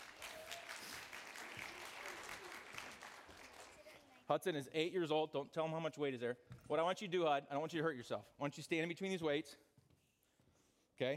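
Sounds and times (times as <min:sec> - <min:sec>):
audience clapping: 0:00.0 - 0:04.2
speech: 0:04.3 - 0:09.7.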